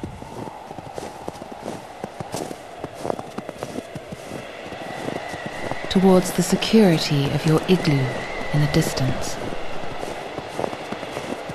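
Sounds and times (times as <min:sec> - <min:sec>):
footsteps crunching across ice: 0:00.1 - 0:04.4, 0:10.0 - 0:11.5
speech: 0:06.0 - 0:09.4.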